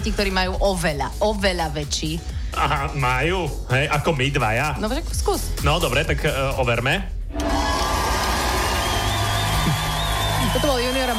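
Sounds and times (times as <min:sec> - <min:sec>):
speech: 0:00.0 - 0:07.5, 0:10.6 - 0:11.1
audience applause: 0:07.4 - 0:11.1.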